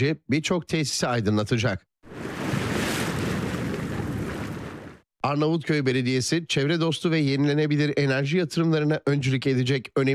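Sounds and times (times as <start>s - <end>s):
speech: 0.0s - 1.9s, 5.2s - 10.1s
sea waves at a wave energy plant at Karaburun Port: 2.0s - 5.1s
wind: 2.0s - 5.1s.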